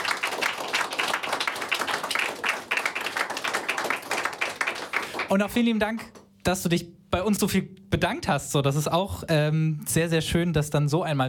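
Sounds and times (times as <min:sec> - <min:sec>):
audience applause: 0:00.0 - 0:05.4
speech: 0:05.3 - 0:11.2.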